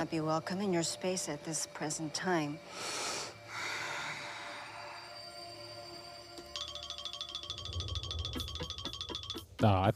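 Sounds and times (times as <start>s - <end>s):
speech: 0.0s - 3.1s, 9.6s - 9.9s
breathy hissing ghost sound effect: 1.0s - 6.2s
rapid rhythmic electronic chattering pulse: 6.6s - 9.8s.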